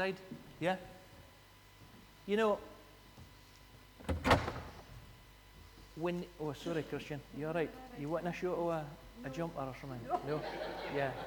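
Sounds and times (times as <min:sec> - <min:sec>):
speech: 0:00.0 - 0:01.0, 0:02.3 - 0:02.7, 0:06.0 - 0:11.2
door opening: 0:04.0 - 0:05.0.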